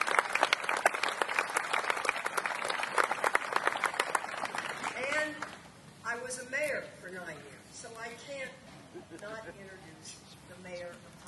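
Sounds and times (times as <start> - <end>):
audience applause: 0.0 - 5.5.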